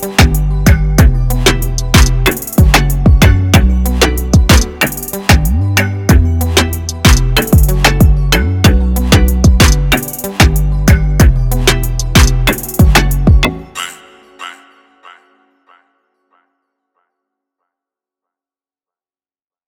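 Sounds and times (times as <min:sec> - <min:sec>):
afro beat: 0:00.0 - 0:14.6.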